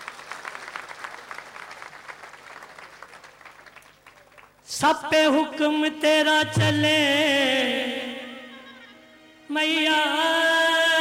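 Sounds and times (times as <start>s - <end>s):
audience applause at a religious devotional stage event: 0.0s - 4.6s
speech: 4.8s - 7.9s, 9.5s - 10.6s.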